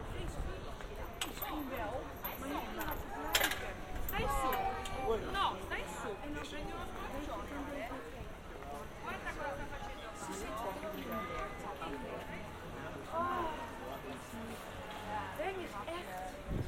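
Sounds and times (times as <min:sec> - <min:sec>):
murmur of voices in Amsterdam: 0:00.0 - 0:16.6.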